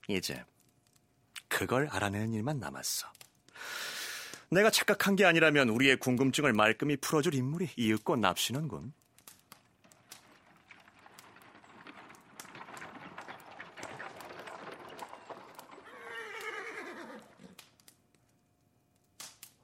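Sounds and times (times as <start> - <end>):
speech: 0.1 - 0.6, 1.6 - 3.9, 4.5 - 9.0
sharp horse hooves: 9.0 - 18.4
carriage wheels rolling: 9.2 - 17.8.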